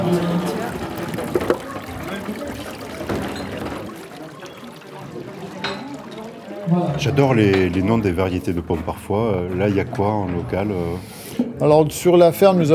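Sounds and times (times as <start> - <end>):
speech: 0.0 - 0.5, 7.0 - 12.7
apple juice running from a fruit press squeezing crushed apples on a farm: 0.0 - 9.2.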